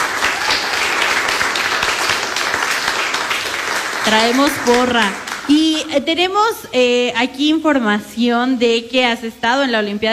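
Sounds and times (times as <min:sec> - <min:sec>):
audience applause: 0:00.0 - 0:05.8
speech: 0:04.1 - 0:10.1.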